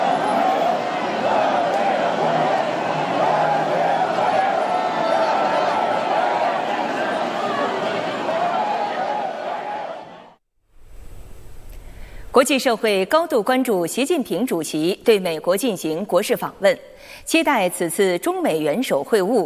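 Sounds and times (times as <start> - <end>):
crowd of overseas Chinese and students welcoming a motorcade along the road: 0.0 - 10.4
speech: 12.4 - 19.4.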